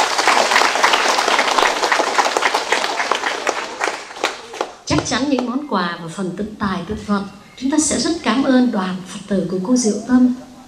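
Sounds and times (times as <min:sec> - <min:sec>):
audience applause: 0:00.0 - 0:05.5
speech: 0:05.0 - 0:10.4.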